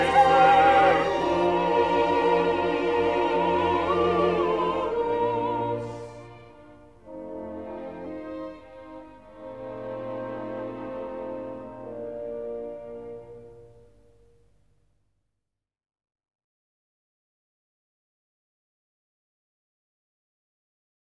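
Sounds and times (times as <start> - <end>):
choir and orchestra performing a requiem with trombone: 0.0 - 14.3.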